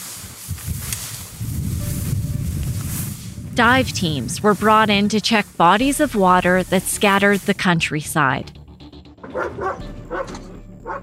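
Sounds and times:
low steady rumble: 0.7 - 8.6
speech: 3.6 - 8.6, 9.4 - 11.0
dog barking: 9.2 - 11.0.

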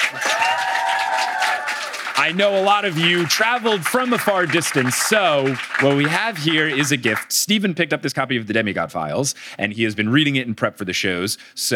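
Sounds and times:
live audience applause: 0.0 - 7.2
speech: 2.3 - 11.7.

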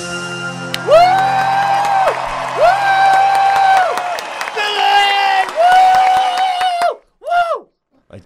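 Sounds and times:
scattered clapping: 0.7 - 7.0
concert crowd cheering: 0.7 - 7.7
short sharp whoops: 0.7 - 7.7.

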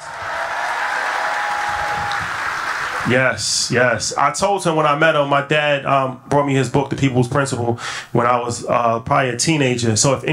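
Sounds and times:
audience applause: 0.0 - 3.4
speech: 3.0 - 10.3.

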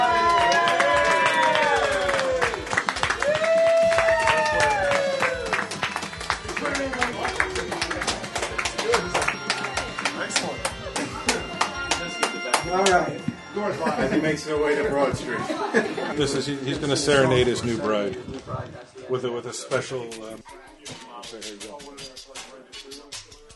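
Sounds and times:
whoops and shouting voices: 0.0 - 5.6
audience clapping for a newly married couple at a chapel wedding: 0.0 - 13.1
laughter: 10.8 - 11.8, 13.6 - 14.6, 15.2 - 17.0
speech: 14.0 - 18.3, 19.1 - 20.6.

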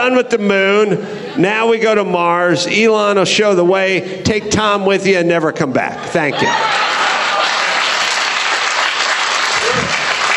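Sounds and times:
speech: 0.0 - 7.0
laughter: 5.8 - 8.4
audience applause: 6.6 - 10.3.

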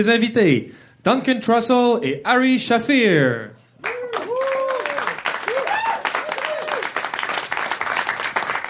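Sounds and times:
speech: 0.0 - 4.0
whoops and cheers from several voices: 3.8 - 7.0
audience applause welcoming host: 3.8 - 8.6.

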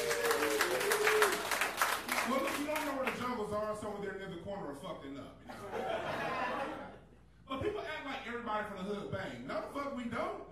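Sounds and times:
faint sustained voice or whoop: 0.0 - 1.6
audience clapping: 0.0 - 3.4
speech: 3.8 - 6.1, 8.3 - 10.5
laughter: 5.5 - 7.2.

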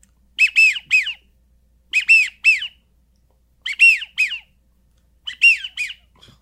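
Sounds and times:
widgeon duck call whistle: 0.4 - 1.2, 1.9 - 2.8, 3.6 - 4.5, 5.3 - 6.1.

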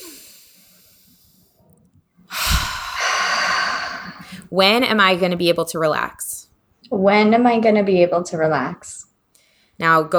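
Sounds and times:
deep breath during a finger-tapping relaxation exercise: 0.0 - 1.6, 2.3 - 4.5, 9.4 - 9.8
speech: 4.5 - 6.2, 6.9 - 9.0, 9.8 - 10.1.

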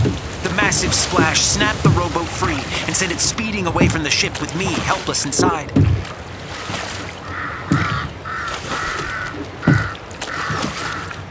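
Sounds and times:
rush: 0.0 - 11.3
speech: 0.7 - 6.2
thumps: 0.8 - 6.2, 7.7 - 8.2, 9.0 - 10.8
ravens cawing: 7.2 - 11.3.

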